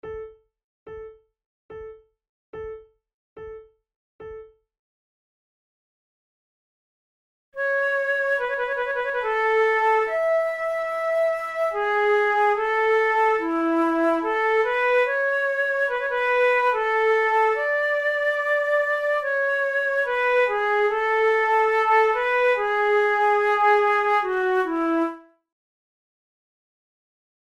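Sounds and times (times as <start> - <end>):
flute sarabande: 7.6 - 25.2.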